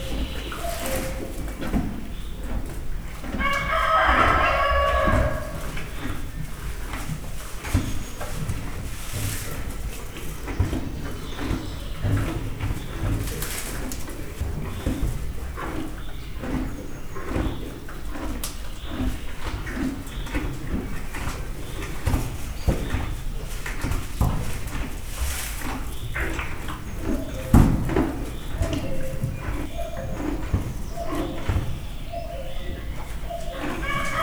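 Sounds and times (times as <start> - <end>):
cuckoo calling: 0.0 - 1.6, 28.3 - 34.2
Hungarian native donkey braying in a zoo: 0.0 - 2.3, 3.3 - 6.0, 26.8 - 34.2
animals eating in a stable: 0.0 - 34.2
rooster crowing: 3.4 - 5.7, 33.3 - 34.2
turkey gobbling: 3.4 - 5.8, 27.1 - 34.2.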